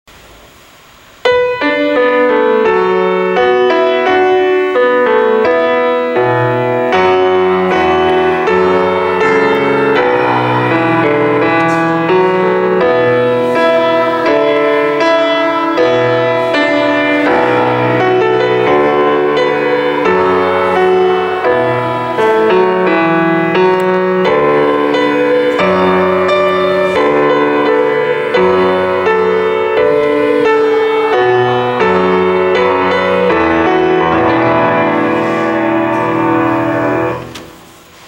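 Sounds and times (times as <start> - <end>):
piano: 0.1 - 38.0.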